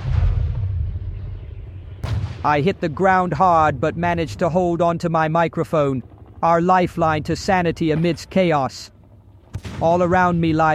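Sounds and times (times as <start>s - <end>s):
explosion: 0.0s - 2.6s
speech: 2.4s - 9.0s, 9.6s - 10.7s.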